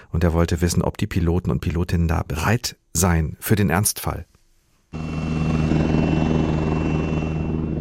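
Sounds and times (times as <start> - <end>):
speech: 0.1 - 4.3, 4.9 - 5.3
Tiger attack helicopter of the Bundeswehr taking off: 5.0 - 7.8.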